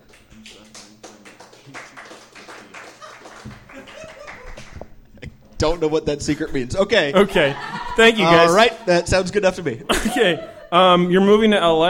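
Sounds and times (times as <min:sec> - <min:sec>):
audience clapping: 0:00.0 - 0:04.9
laughter: 0:01.6 - 0:04.9, 0:07.2 - 0:08.8, 0:09.8 - 0:11.0
speech: 0:05.6 - 0:11.8.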